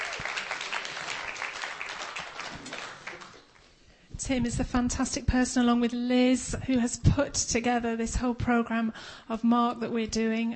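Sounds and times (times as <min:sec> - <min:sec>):
audience applause: 0:00.0 - 0:03.6
speech: 0:04.2 - 0:10.5.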